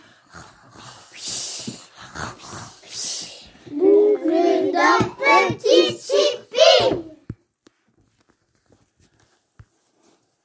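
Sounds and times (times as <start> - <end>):
voice: 2.9 - 7.2.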